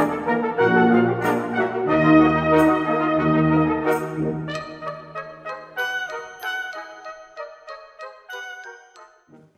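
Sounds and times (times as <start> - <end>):
brass band playing a scherzo: 0.0 - 7.6.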